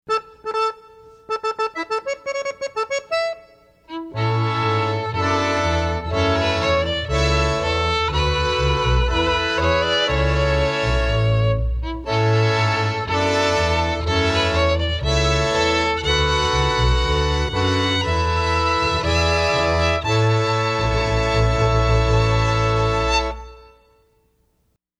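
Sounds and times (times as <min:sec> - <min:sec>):
fanfare: 0:00.1 - 0:23.9.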